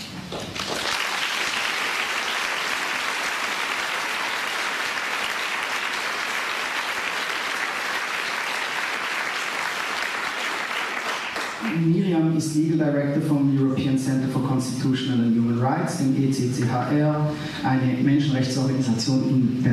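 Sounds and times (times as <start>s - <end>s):
crowd applauding: 0.0s - 12.0s
speech: 11.8s - 19.7s.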